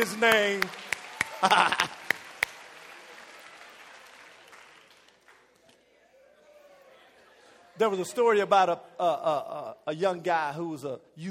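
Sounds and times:
speech: 0.0s - 2.0s, 7.8s - 11.3s
audience clapping: 0.0s - 5.9s
laughter: 1.2s - 2.2s, 6.9s - 9.8s.

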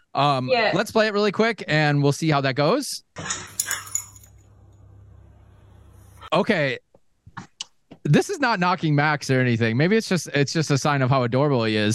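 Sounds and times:
speech: 0.2s - 3.5s, 6.3s - 6.8s, 7.4s - 11.9s
French bulldog barking and yipping: 3.4s - 4.2s
low steady hum: 3.5s - 6.3s.

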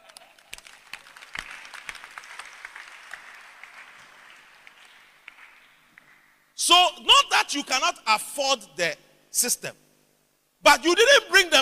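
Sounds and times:
audience applause: 0.0s - 6.3s
speech: 6.7s - 9.8s, 10.6s - 11.6s.

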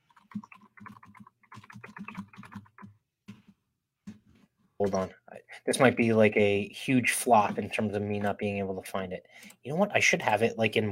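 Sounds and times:
typing a web address on a computer keyboard: 0.1s - 3.0s
speech: 4.8s - 10.8s.

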